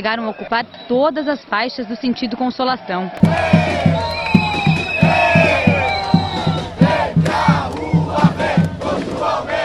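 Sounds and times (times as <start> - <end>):
speech: 0.0 - 3.9
protest crowd chanting in the street: 0.0 - 9.6
regular pounding drumbeat: 3.2 - 9.6.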